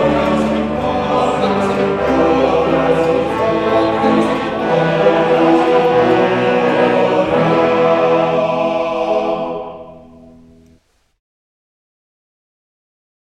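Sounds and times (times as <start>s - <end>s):
choir singing: 0.0s - 10.6s.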